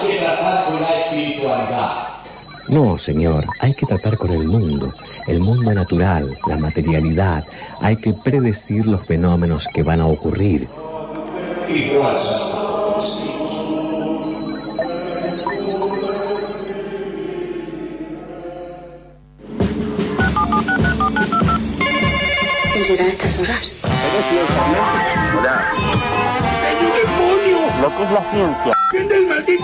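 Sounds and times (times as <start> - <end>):
mix of voices and music: 0.0 - 29.6
telephone dialing tones: 0.6 - 10.8, 13.7 - 16.7, 20.2 - 21.6, 28.8 - 29.0
speech: 2.7 - 10.9, 11.7 - 13.1, 22.9 - 23.2, 28.0 - 29.6.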